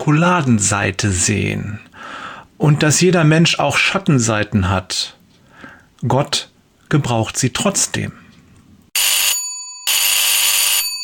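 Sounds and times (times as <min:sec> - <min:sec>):
speech: 0:00.0 - 0:05.2, 0:06.0 - 0:08.2
telephone ringing loudly: 0:09.0 - 0:11.0.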